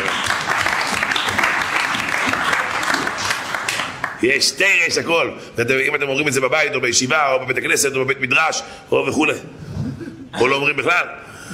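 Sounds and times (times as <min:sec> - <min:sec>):
audience applause: 0:00.0 - 0:04.2
speech: 0:04.2 - 0:09.6, 0:10.3 - 0:11.5.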